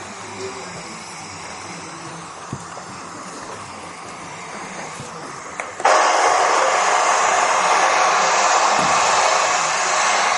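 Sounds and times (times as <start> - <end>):
white noise: 0.0 - 10.3.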